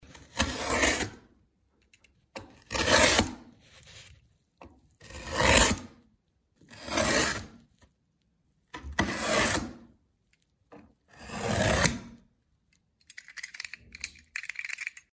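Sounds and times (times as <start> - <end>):
utility knife cutting a cardboard box: 0.0 - 1.3, 2.5 - 4.0, 5.0 - 6.0, 6.7 - 7.6, 8.8 - 9.9, 11.1 - 12.2.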